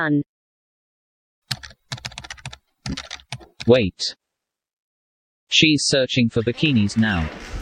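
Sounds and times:
speech: 0.0s - 0.3s, 3.7s - 4.2s, 5.5s - 7.5s
rapid keystrokes on a computer keyboard typing card details: 1.5s - 3.7s.

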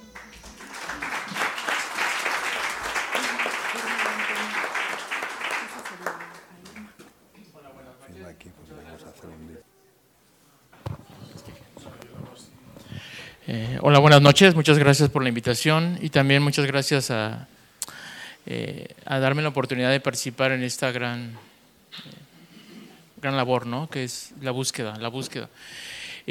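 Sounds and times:
audience applause: 0.0s - 7.0s
speech: 13.8s - 17.6s, 18.5s - 22.1s, 23.2s - 26.2s.

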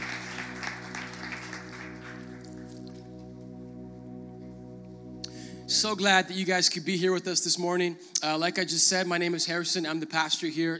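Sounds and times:
audience applause: 0.0s - 3.0s
speech: 5.7s - 10.7s.

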